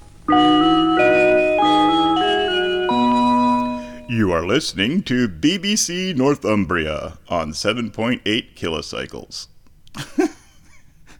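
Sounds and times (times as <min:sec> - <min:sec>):
ring-modulated chime call sign: 0:00.0 - 0:04.4
speech: 0:04.4 - 0:10.1.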